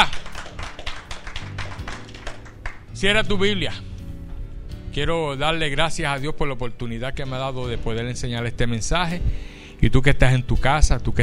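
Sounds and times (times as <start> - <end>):
crowd applause: 0.0 - 2.9
speech: 3.0 - 3.9, 5.0 - 11.2.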